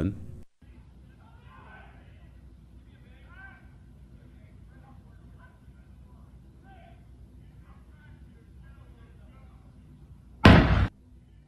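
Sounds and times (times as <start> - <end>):
gunshot or small explosion outside house: 10.4 - 10.9.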